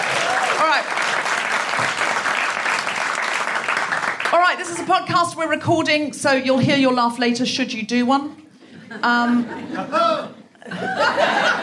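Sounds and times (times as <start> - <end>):
audience applause: 0.0 - 4.6
speech: 4.4 - 10.3
laughter: 8.8 - 11.6.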